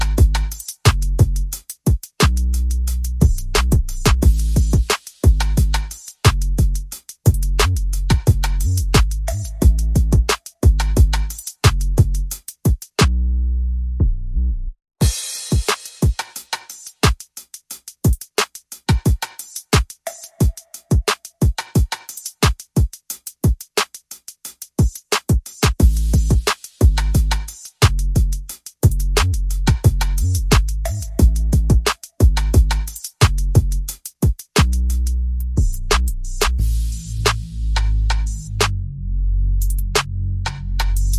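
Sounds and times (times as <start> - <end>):
bass: 0.0 - 1.6, 2.2 - 12.4, 13.0 - 14.8, 25.8 - 34.0, 34.6 - 41.1
percussion: 0.0 - 13.2, 15.0 - 38.8, 39.6 - 41.1.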